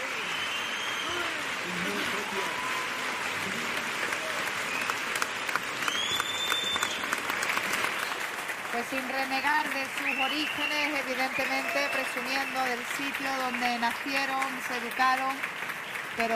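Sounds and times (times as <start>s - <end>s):
audience applause in a theatre: 0.0s - 16.3s
speech: 8.8s - 15.6s, 16.2s - 16.3s.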